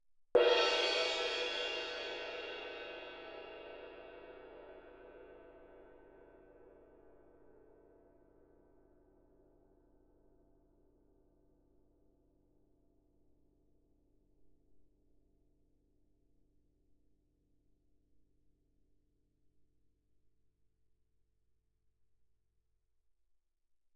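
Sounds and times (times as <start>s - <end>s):
loud mallet ride on suspended cymbals: 0.4s - 5.7s.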